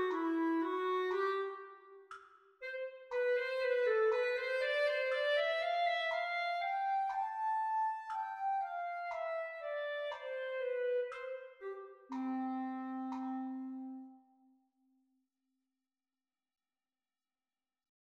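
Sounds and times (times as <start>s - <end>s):
clarinet duet at practice speed: 0.0s - 2.0s, 2.6s - 14.3s.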